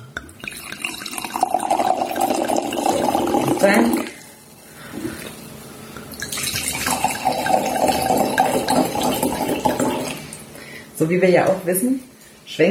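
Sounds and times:
liquid pouring from bottle: 0.3s - 5.2s, 6.1s - 10.4s
speech: 3.6s - 4.0s, 11.0s - 12.6s.

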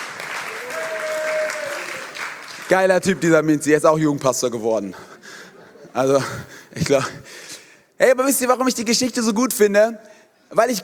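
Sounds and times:
audience applause: 0.0s - 3.2s
speech: 2.7s - 5.1s, 6.0s - 7.2s, 8.0s - 10.8s.

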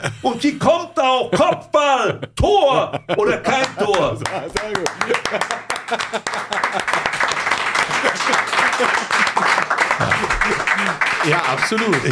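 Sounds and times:
speech: 0.0s - 9.5s, 11.2s - 12.1s
laughter: 0.0s - 12.1s
applause: 3.4s - 12.1s.

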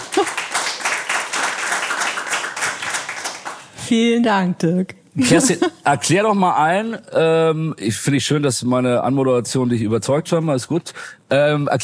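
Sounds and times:
audience applause: 0.0s - 3.7s
speech: 3.9s - 11.8s.

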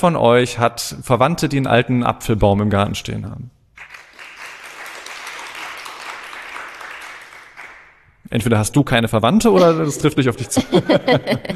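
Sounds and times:
speech: 0.0s - 3.6s, 8.3s - 11.5s
audience clapping: 3.8s - 8.1s
laughter: 9.6s - 11.5s.

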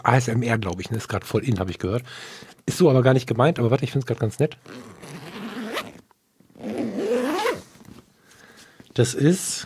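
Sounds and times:
speech: 0.0s - 5.2s, 9.0s - 9.6s
zipper on an Italian leather bag from The Bridge: 4.6s - 8.0s.

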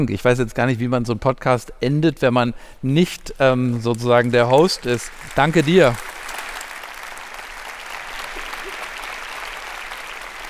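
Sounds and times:
speech: 0.0s - 6.2s
audience applause: 3.9s - 10.4s.

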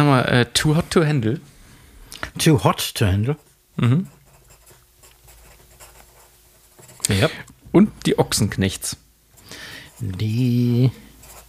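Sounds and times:
speech: 0.1s - 1.5s, 2.2s - 4.2s, 7.1s - 9.0s, 9.6s - 11.0s
pen scratching across paper writing notes by hand: 4.2s - 7.1s, 11.2s - 11.4s.

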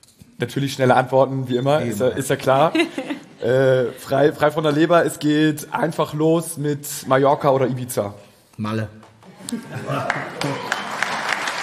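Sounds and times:
speech: 0.4s - 10.7s
laughter: 2.4s - 4.6s, 9.2s - 11.4s
audience applause: 9.3s - 11.6s.

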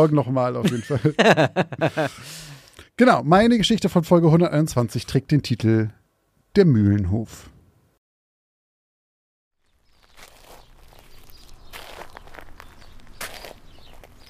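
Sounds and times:
speech: 0.0s - 6.0s, 6.6s - 7.5s
laughter: 0.6s - 2.4s
boots crunching on gravel path: 9.6s - 14.2s.

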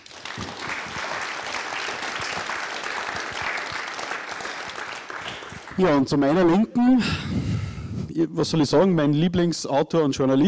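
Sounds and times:
audience applause: 0.0s - 6.5s
speech: 5.8s - 10.4s.

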